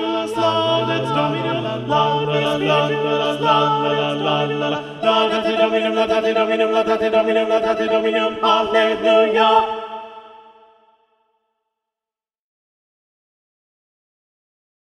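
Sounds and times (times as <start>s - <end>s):
balanced voices: 0.0s - 10.1s.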